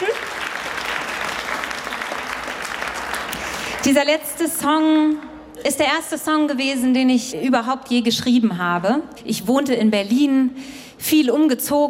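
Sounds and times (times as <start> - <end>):
crowd applause: 0.0 - 3.9
speech: 3.8 - 11.8.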